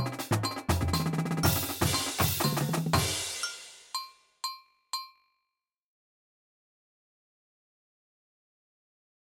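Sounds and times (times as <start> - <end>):
drumline: 0.0 - 3.9.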